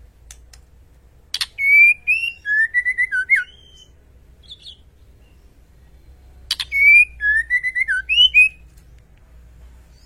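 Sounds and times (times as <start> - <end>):
white-rumped shama whistled song: 1.4 - 5.5, 6.5 - 8.7.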